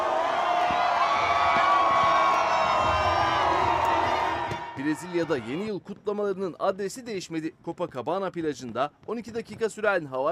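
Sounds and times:
New Year's crowd cheering in Times Square: 0.0 - 5.7
speech: 4.8 - 10.3.

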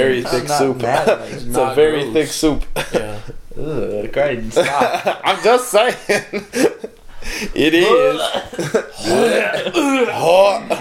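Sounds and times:
speech: 0.0 - 10.7
laughter: 4.5 - 10.7
person imitating vomiting: 7.8 - 10.3.

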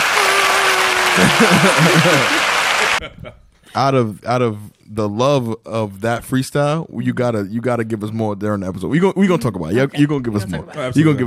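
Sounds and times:
crowd applauding: 0.0 - 3.0
person whooping: 0.0 - 3.0
laughter: 0.0 - 3.5, 9.6 - 11.2
speech: 1.2 - 11.2.

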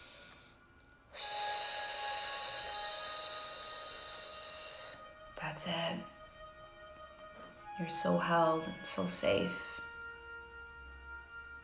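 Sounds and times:
hissing snake breath exercise: 0.0 - 5.2
speech: 5.6 - 6.2, 7.8 - 9.7.

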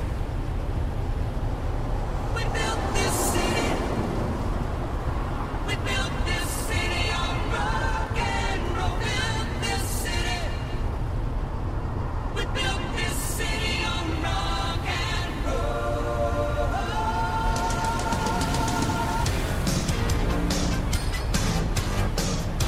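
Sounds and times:
steady low rumble of a moving car: 0.0 - 22.6.

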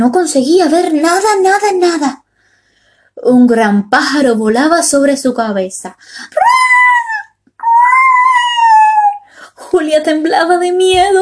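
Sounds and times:
speech: 0.0 - 2.2, 3.2 - 6.6, 9.7 - 11.2
dog howling cries: 6.4 - 9.2.

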